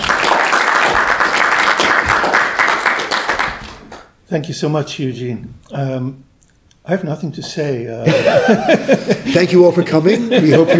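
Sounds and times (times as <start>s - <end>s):
audience clapping to welcome a seminar speaker: 0.0s - 4.2s
speech: 4.3s - 10.7s
laughter: 8.0s - 10.7s.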